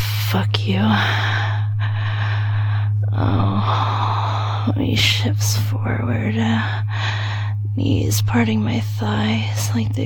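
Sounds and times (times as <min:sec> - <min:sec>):
heavy breathing: 0:00.0 - 0:05.8, 0:06.4 - 0:07.7
steady low hum: 0:00.0 - 0:10.0
speech: 0:00.3 - 0:01.4, 0:03.2 - 0:03.9, 0:04.7 - 0:07.1, 0:07.8 - 0:10.0.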